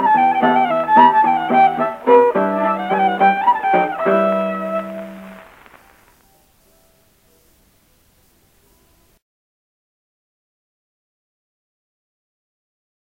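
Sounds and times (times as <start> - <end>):
hornpipe tunes: 0.0 - 7.1.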